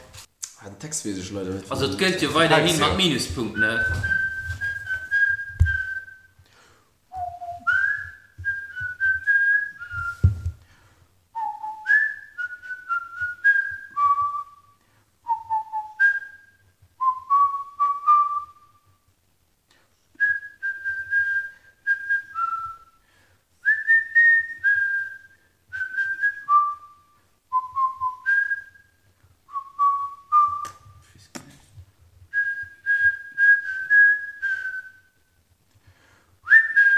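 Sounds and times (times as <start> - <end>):
speech: 0.6 - 4.2
person whistling a tune with headphones: 3.6 - 6.4, 7.1 - 10.6, 11.4 - 18.8, 20.2 - 23.0, 23.6 - 31.0, 32.3 - 35.2, 36.4 - 36.9.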